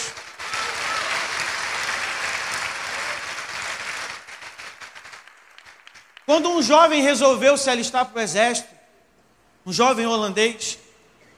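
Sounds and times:
audience applause: 0.0 - 6.3
speech: 6.3 - 8.8, 9.6 - 10.8.

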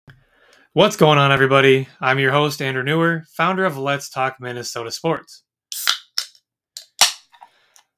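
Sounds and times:
speech: 0.7 - 5.4
beer can cracking open: 5.7 - 7.3.

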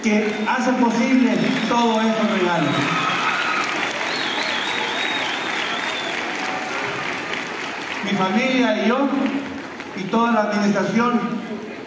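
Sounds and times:
speech: 0.0 - 3.1, 8.0 - 11.8
audience applause: 0.0 - 11.0
faint whistle or cheer: 1.4 - 6.8.

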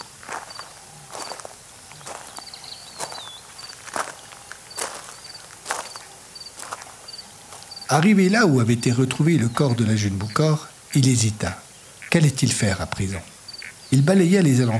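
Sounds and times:
footsteps on stony ground: 0.0 - 9.7
faint high insect chirps: 0.0 - 14.7
speech: 7.9 - 13.3, 13.9 - 14.7.

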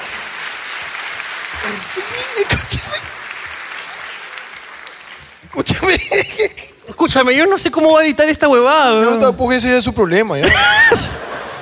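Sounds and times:
audience applause: 0.0 - 6.1
laughter: 1.6 - 3.2, 5.6 - 7.0, 10.4 - 11.6
speech: 1.6 - 3.2, 5.5 - 11.2.

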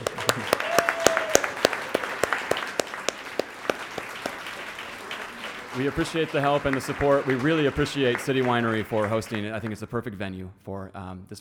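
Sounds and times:
festival audience clapping at City Winery: 0.0 - 9.8
speech: 5.8 - 11.3.

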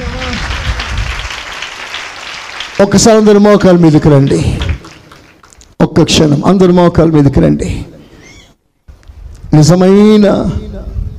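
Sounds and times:
church congregation clapping to praise God: 0.0 - 5.8
speech: 2.8 - 4.7, 5.8 - 7.9, 9.5 - 10.7.

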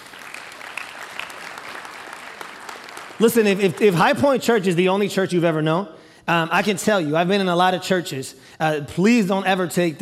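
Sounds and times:
audience applause: 0.0 - 4.2
speech: 3.2 - 10.0.

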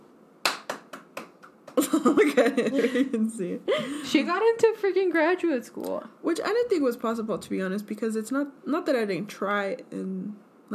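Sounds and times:
hand clapping: 0.4 - 2.0
laughter: 1.8 - 4.0
speech: 1.8 - 10.7.

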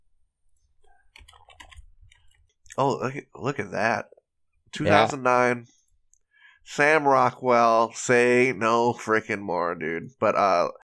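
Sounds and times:
typing on a computer keyboard: 1.1 - 2.6
speech: 2.8 - 5.8, 6.6 - 10.8.

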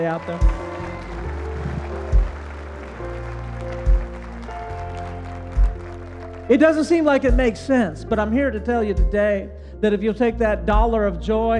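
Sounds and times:
speech: 0.0 - 0.7, 6.5 - 11.5
hand clapping: 0.0 - 7.4.

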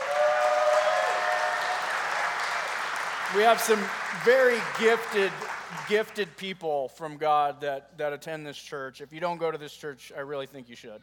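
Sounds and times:
church congregation at Alpine Church applauding the worship team: 0.0 - 6.4
speech: 3.3 - 11.0.

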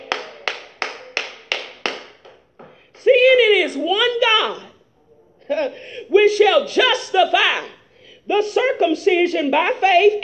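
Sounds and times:
hands clapping: 0.0 - 2.8
speech: 3.7 - 4.7, 5.5 - 10.2.

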